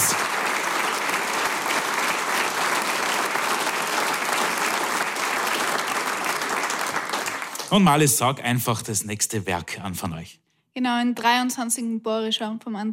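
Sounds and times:
audience applause: 0:00.0 - 0:08.8
speech: 0:07.7 - 0:12.9.

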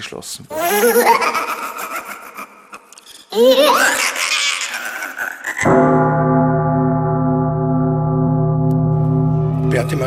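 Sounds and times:
speech: 0:00.0 - 0:01.9, 0:03.4 - 0:04.2, 0:09.8 - 0:10.0
laughter: 0:00.6 - 0:05.8
bells ringing: 0:05.9 - 0:10.0.

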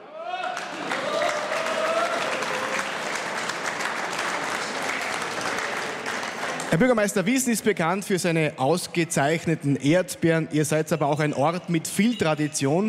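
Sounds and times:
voices and cheers: 0:00.0 - 0:06.7
audience applause: 0:00.0 - 0:07.3
speech: 0:06.7 - 0:12.8.

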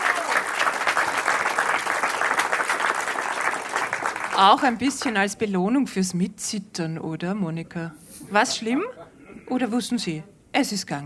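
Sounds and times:
audience applause: 0:00.0 - 0:05.2
speech: 0:04.4 - 0:11.0.

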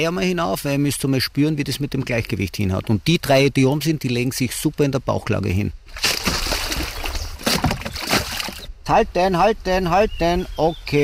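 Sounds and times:
speech: 0:00.0 - 0:06.1, 0:08.9 - 0:11.0
raft pushed into the water splashing and sloshing: 0:05.8 - 0:08.7
dull knocks: 0:06.0 - 0:08.6.

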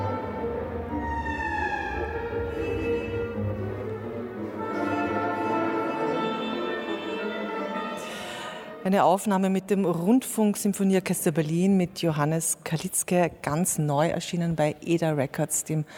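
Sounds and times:
car horns honking: 0:00.0 - 0:03.8, 0:04.6 - 0:08.5
speech: 0:08.8 - 0:15.9.

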